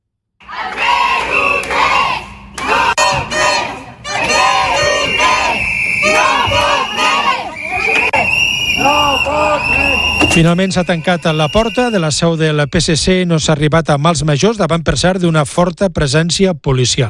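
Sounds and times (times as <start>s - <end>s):
protesters chanting and shouting outside party headquarters: 0.4s - 12.2s
speech: 10.4s - 17.0s.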